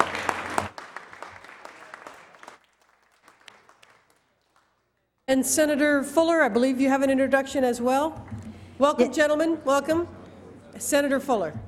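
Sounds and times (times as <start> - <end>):
applause in a legislative chamber: 0.0 - 5.2
speech: 5.3 - 10.2, 10.8 - 11.6.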